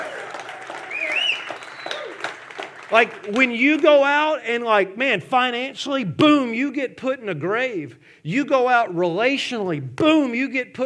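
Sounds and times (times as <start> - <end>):
audience applause: 0.0 - 3.9
rising-and-falling whistle-like tone: 0.9 - 2.2
speech: 2.9 - 10.8.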